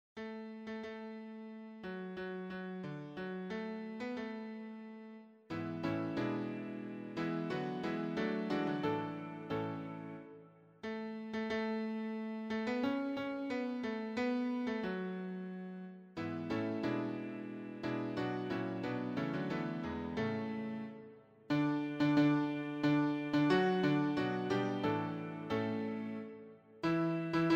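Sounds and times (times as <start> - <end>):
piano: 0.2 - 27.5.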